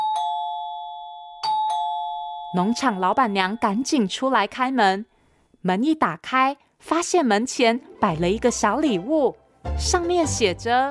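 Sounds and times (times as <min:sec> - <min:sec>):
electronic doorbell chiming: 0:00.0 - 0:04.4
speech: 0:02.5 - 0:10.8.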